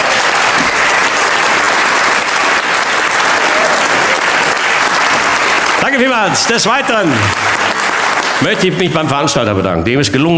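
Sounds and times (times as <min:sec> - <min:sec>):
audience applause: 0:00.0 - 0:09.4
speech: 0:06.0 - 0:07.6, 0:08.4 - 0:10.3.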